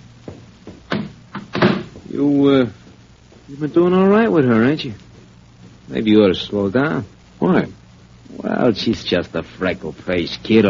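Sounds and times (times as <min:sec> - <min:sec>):
door opening and closing: 0:00.9 - 0:02.0
speech: 0:02.1 - 0:02.8, 0:03.5 - 0:05.1, 0:05.9 - 0:07.8, 0:08.6 - 0:10.6.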